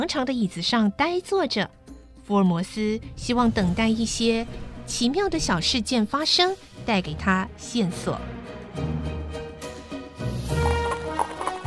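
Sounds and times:
speech: 0:00.0 - 0:09.2
horse hooves clip-clopping: 0:10.6 - 0:11.6.

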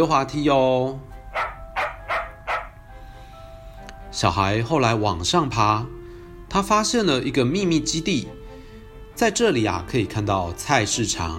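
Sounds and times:
speech: 0:00.0 - 0:01.1, 0:04.1 - 0:08.4, 0:09.2 - 0:11.3
puppy barking: 0:01.3 - 0:02.8.

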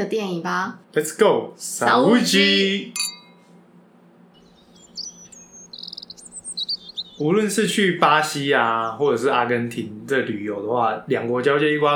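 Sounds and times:
speech: 0:00.0 - 0:03.1, 0:07.2 - 0:11.9
low hum: 0:00.0 - 0:11.9
birds chirping and calling in a bird park: 0:04.4 - 0:10.9.

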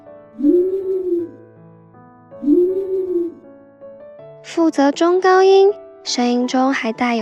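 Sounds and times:
owl hooting: 0:00.4 - 0:01.4, 0:02.4 - 0:03.4
speech: 0:04.6 - 0:07.2.

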